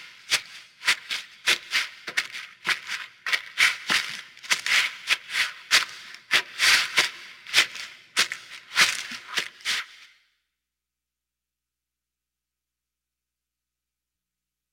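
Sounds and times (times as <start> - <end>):
footsteps in forest: 0.0 - 10.1.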